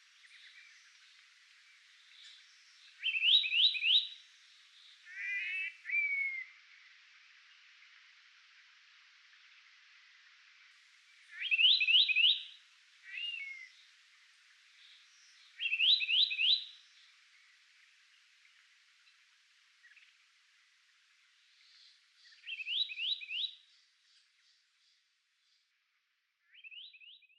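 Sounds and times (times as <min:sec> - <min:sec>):
soldadinho bird singing: 0:00.1 - 0:06.6, 0:11.2 - 0:13.9, 0:14.8 - 0:17.6, 0:21.5 - 0:25.8, 0:26.4 - 0:27.3.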